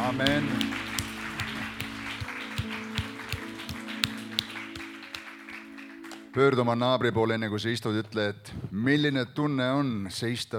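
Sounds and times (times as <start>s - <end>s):
audience applause: 0.0s - 6.4s
speech: 0.1s - 0.8s, 6.4s - 10.5s.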